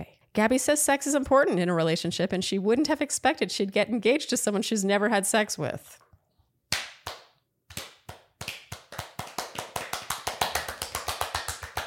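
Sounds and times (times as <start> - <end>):
speech: 0.4 - 6.1
fast hand clapping: 6.7 - 11.8.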